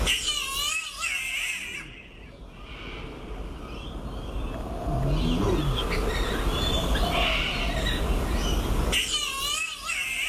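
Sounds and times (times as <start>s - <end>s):
green catbird calling like a human baby: 0.0s - 10.2s.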